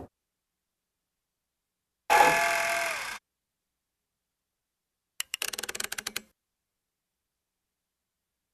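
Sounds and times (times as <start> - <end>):
noise machine: 2.1 - 3.2.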